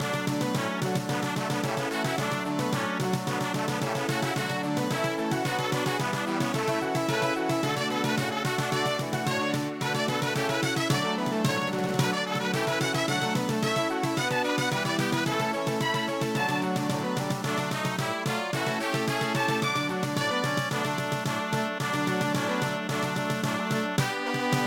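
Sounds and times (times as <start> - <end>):
brass band march: 0.0 - 24.6.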